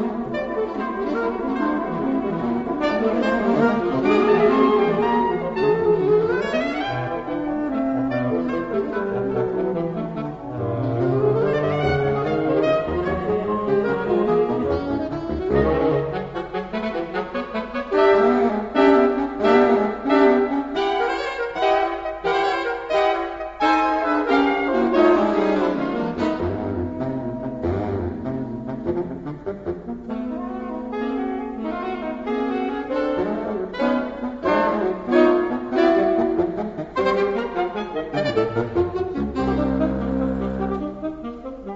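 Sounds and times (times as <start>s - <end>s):
saxophone quartet playing a finale: 0.0s - 41.7s.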